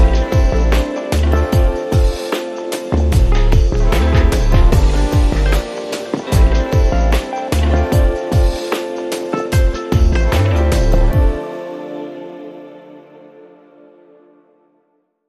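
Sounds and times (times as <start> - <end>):
deluxe keys keyboard playing: 0.0 - 13.9.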